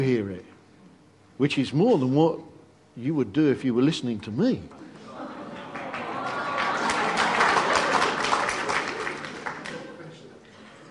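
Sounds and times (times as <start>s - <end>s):
speech: 0.0s - 0.5s, 1.4s - 4.8s
laughter: 4.8s - 10.9s
audience clapping: 5.5s - 10.3s.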